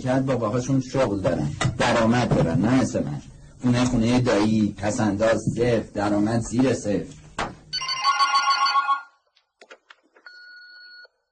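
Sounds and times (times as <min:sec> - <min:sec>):
speech: 0:00.0 - 0:07.2
telephone bell ringing: 0:07.7 - 0:09.2, 0:10.3 - 0:11.1.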